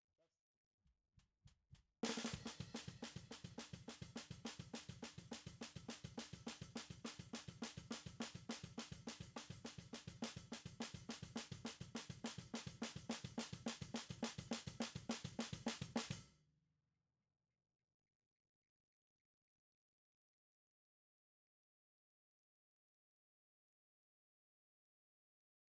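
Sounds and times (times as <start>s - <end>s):
snare drum: 2.0s - 16.3s.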